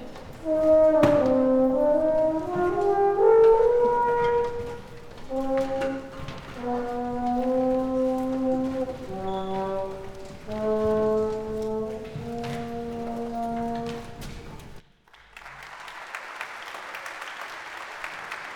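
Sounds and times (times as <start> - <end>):
horn: 0.0 - 14.8.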